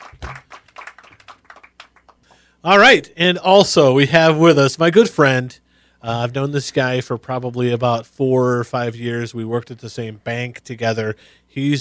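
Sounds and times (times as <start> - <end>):
applause: 0.0 - 2.4
speech: 2.6 - 11.7.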